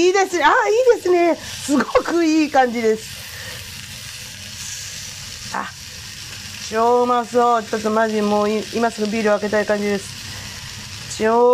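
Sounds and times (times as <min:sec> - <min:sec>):
speech: 0:00.0 - 0:03.3, 0:05.5 - 0:05.8, 0:06.7 - 0:10.2, 0:11.2 - 0:11.5
food sizzling while pan-frying: 0:00.0 - 0:11.5.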